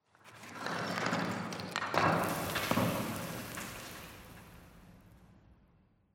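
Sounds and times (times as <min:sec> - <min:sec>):
tenement concrete debris: 0:01.5 - 0:04.9.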